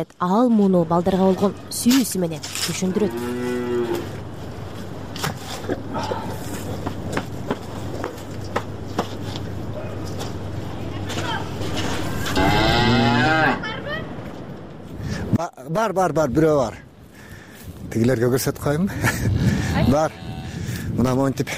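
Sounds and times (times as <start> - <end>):
speech: 0.0 - 4.1, 15.6 - 16.8, 17.9 - 20.3, 20.9 - 21.5
rustling clattering noise: 1.2 - 12.5
cattle lowing heading out to pasture: 2.8 - 4.2, 12.2 - 13.6, 19.8 - 20.6.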